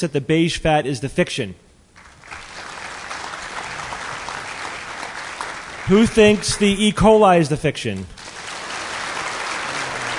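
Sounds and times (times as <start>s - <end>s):
speech: 0.0s - 1.7s, 5.9s - 8.2s
crowd applause: 2.0s - 6.6s, 8.2s - 10.1s.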